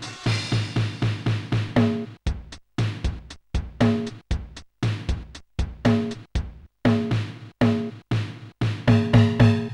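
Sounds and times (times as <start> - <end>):
drum kit: 0.0 - 9.7.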